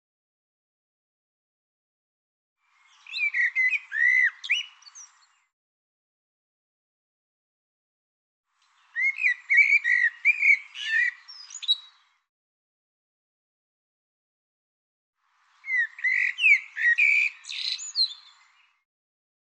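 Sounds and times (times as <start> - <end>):
bird song: 2.6 - 5.6, 8.6 - 12.3, 15.3 - 18.9.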